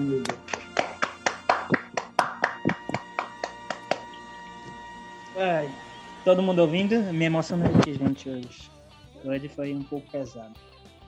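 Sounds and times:
speech: 0:00.0 - 0:00.6, 0:06.3 - 0:10.8
audience clapping: 0:00.0 - 0:04.3.

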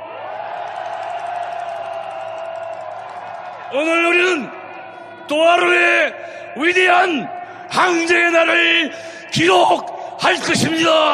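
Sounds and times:
large crowd roaring and cheering with shouts and whoops: 0:00.0 - 0:08.8
speech: 0:03.7 - 0:04.6, 0:05.3 - 0:11.1.

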